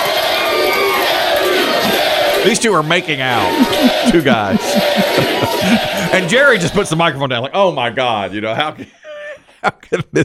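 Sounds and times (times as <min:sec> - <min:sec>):
studio audience cheering: 0:00.0 - 0:07.4
laughter: 0:01.8 - 0:07.2, 0:08.0 - 0:10.2
speech: 0:02.4 - 0:09.0, 0:09.6 - 0:10.2.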